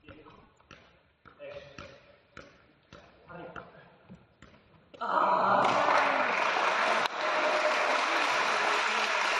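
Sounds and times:
header touches in arena: 0.0 - 4.7
ovation in arena: 5.0 - 9.3.

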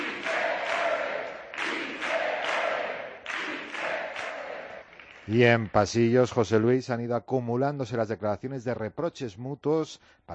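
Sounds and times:
Podemos political group chanting battle cry: 0.0 - 4.9
speech: 5.3 - 10.3.

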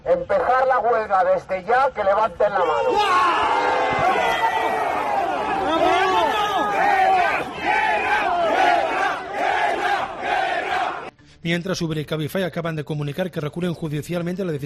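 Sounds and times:
speech: 0.1 - 4.5, 11.4 - 14.6
crowd of taxi drivers chanting a war cry: 3.2 - 11.1.

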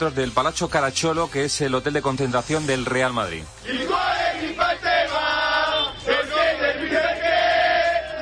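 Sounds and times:
speech: 0.0 - 3.8
football fans chanting at night: 3.6 - 8.2.

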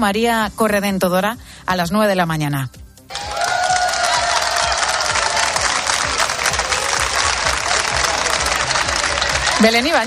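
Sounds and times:
speech: 0.0 - 2.8, 9.6 - 10.0
applause welcoming students at school: 3.1 - 10.0
faint crowd voices and cheering: 3.1 - 10.0.

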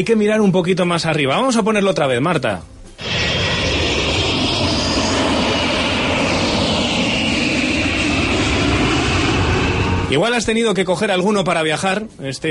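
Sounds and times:
speech: 0.0 - 3.1, 10.1 - 12.4
airplane noise: 2.6 - 12.4.

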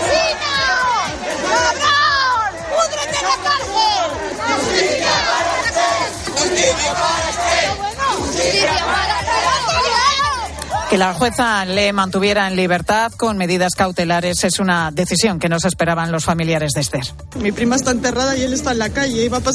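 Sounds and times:
crowd booing and shouting: 0.0 - 11.8
speech: 10.9 - 19.5.

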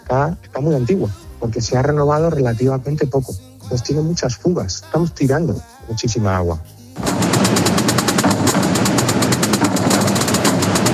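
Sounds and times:
speech: 0.1 - 6.8
Holy Week procession drums: 7.0 - 10.9.

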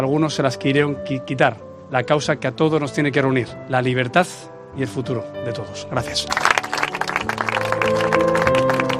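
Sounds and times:
speech: 0.0 - 6.6
applause at a memorial event in Rentería, Guipúzcoa: 6.2 - 8.9.

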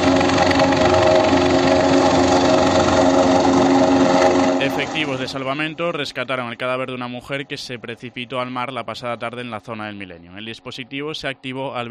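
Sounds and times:
rescue helicopter engine in A Coruña: 0.0 - 9.4
speech: 5.3 - 11.9.

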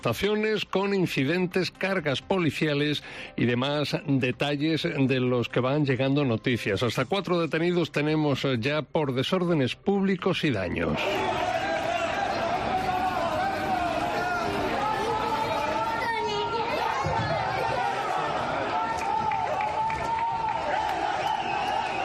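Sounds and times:
speech: 0.0 - 11.4
crowd of protesters shouting and chanting in the street: 11.0 - 22.0.

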